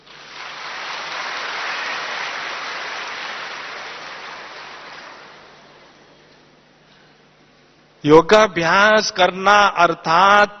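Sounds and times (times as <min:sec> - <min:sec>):
audience clapping: 0:00.0 - 0:06.0
speech: 0:08.0 - 0:10.5.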